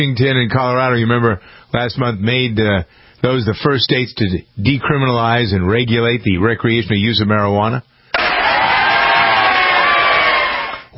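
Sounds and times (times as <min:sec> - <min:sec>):
speech: 0:00.0 - 0:07.9
studio audience cheering: 0:08.2 - 0:10.9.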